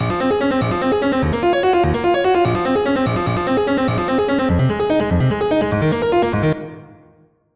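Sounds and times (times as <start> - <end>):
artcore piano loop: 0.0 - 7.1.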